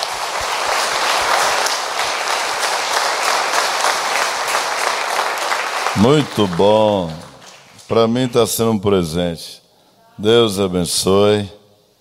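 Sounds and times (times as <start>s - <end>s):
audience applause: 0.0s - 8.4s
speech: 6.0s - 7.2s, 7.9s - 9.6s, 10.2s - 11.6s.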